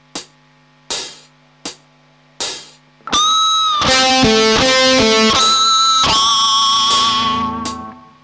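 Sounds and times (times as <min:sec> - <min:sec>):
pinch harmonics: 0:03.0 - 0:08.2.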